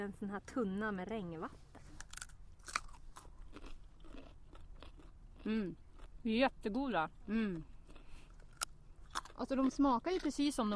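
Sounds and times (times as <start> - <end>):
speech: 0.0 - 1.7, 5.4 - 7.7, 9.4 - 10.7
low steady hum: 0.0 - 10.7
chewing crackles: 1.8 - 10.7
crunchy bite of a carrot: 2.0 - 6.1.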